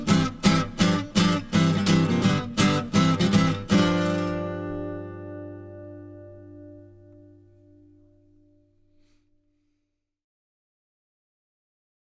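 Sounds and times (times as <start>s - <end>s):
guitar: 0.0s - 9.2s.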